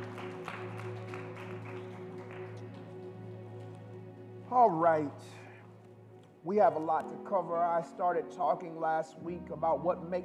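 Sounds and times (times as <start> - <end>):
audience clapping hands: 0.0 - 4.0
speech: 4.5 - 5.4, 6.4 - 10.2.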